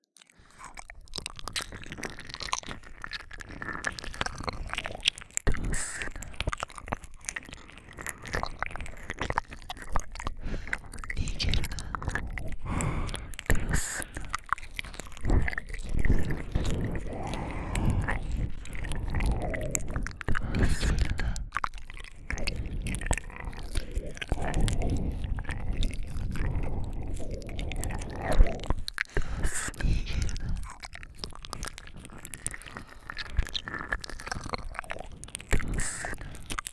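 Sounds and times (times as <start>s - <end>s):
ear licking: 0.3s - 36.7s
person whispering: 5.5s - 6.5s, 10.0s - 30.9s, 35.5s - 36.4s.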